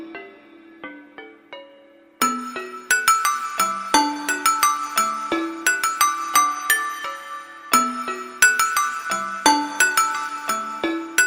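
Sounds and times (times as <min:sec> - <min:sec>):
music box: 0:02.2 - 0:11.2.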